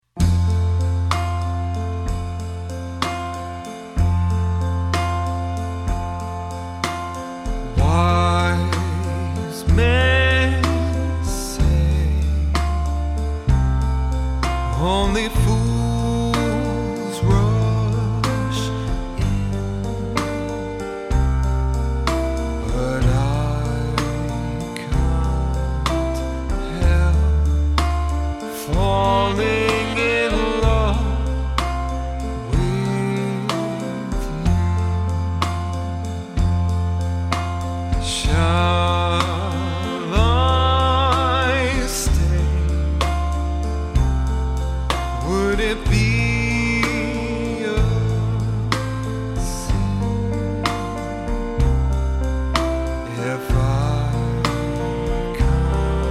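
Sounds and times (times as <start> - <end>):
swing band playing: 0.2 - 56.0.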